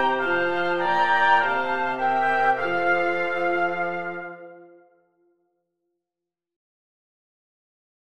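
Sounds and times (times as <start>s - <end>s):
wind quartet playing a kyrie: 0.0s - 4.8s.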